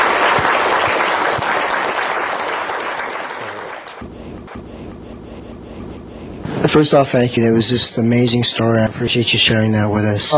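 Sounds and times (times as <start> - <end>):
audience applause: 0.0 - 4.0
speech: 6.6 - 10.3.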